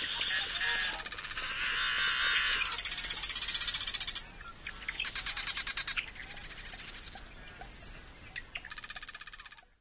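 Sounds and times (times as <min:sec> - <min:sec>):
marsh wren singing rattling trills and chattering clicks: 0:00.0 - 0:07.2.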